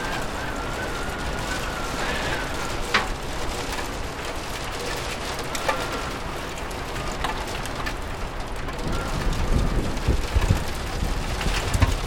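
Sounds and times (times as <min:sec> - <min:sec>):
rain pattering on a window: 0:00.0 - 0:12.0.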